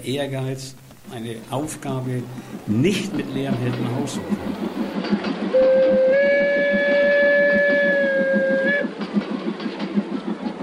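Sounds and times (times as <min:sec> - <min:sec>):
speech: 0:00.0 - 0:06.2
train running on rails: 0:00.0 - 0:10.6
train horn blast: 0:05.5 - 0:09.0.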